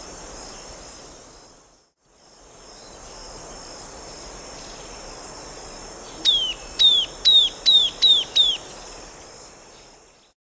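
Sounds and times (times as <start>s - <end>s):
bird clear high whistled calls: 6.2s - 8.8s.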